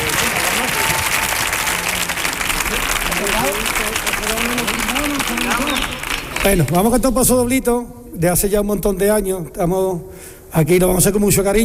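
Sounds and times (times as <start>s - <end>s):
audience applause: 0.0s - 7.0s
speech: 6.4s - 11.6s.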